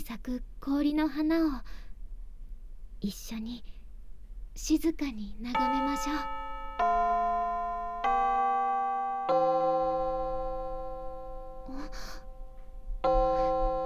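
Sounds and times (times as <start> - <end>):
speech: 0.1 - 1.8, 3.0 - 3.8, 4.6 - 7.4
school bell chime marking end of class: 5.6 - 13.8.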